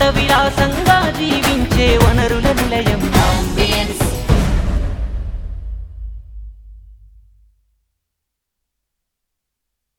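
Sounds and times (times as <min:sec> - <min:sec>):
ambient music: 0:00.0 - 0:06.8.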